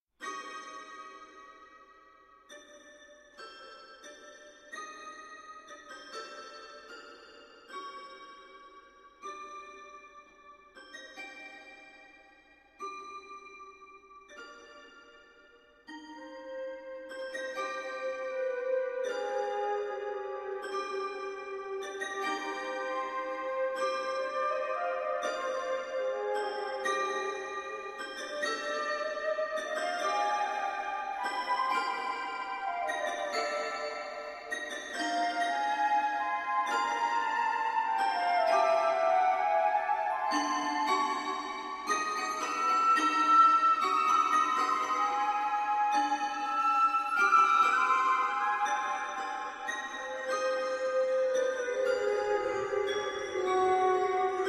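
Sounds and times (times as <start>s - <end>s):
waltz music: 15.9s - 54.4s.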